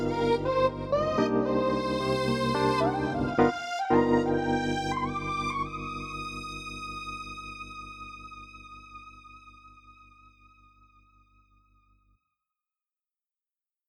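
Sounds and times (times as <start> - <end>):
synth lead: 0.0 - 10.4.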